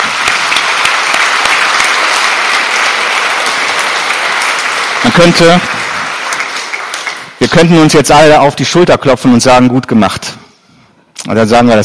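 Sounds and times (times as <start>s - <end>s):
applause: 0.0s - 8.4s
speech: 5.2s - 5.8s, 7.5s - 10.4s, 11.3s - 11.8s.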